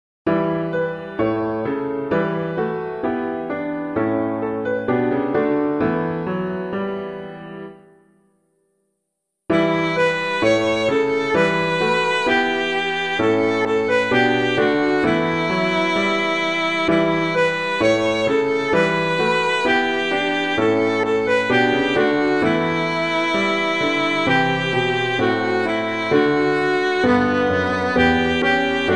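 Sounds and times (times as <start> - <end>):
piano piece: 0.3 - 8.8, 9.5 - 28.9.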